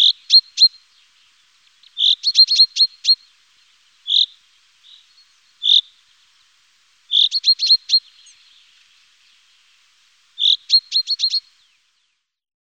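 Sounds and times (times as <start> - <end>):
Common chaffinch trilling song: 0.0 - 6.0, 7.1 - 9.5, 10.4 - 12.1.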